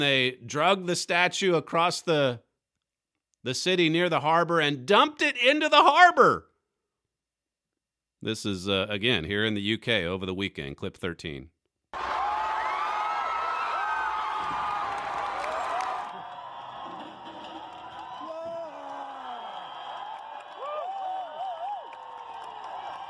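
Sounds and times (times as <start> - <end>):
speech: 0.0 - 2.5, 3.4 - 6.5, 8.2 - 12.0
large crowd cheering in a frenzy: 11.9 - 23.0.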